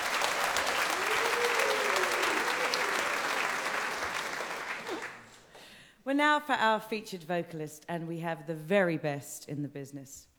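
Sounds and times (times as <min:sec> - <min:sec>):
audience applause: 0:00.0 - 0:05.5
speech: 0:06.1 - 0:10.3.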